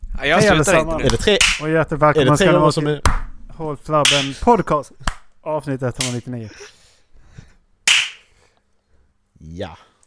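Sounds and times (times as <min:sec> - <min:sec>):
speech: 0:00.2 - 0:06.8, 0:09.4 - 0:09.9
single sharp loud hand clap: 0:01.0 - 0:01.7, 0:04.0 - 0:04.4, 0:05.0 - 0:05.3, 0:06.0 - 0:06.2, 0:07.9 - 0:08.3.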